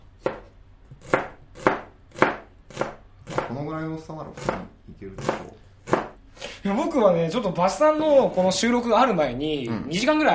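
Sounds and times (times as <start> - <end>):
knife thinly slicing an onion: 0.2 - 3.6, 4.3 - 6.2
speech: 3.6 - 5.6, 6.6 - 10.3.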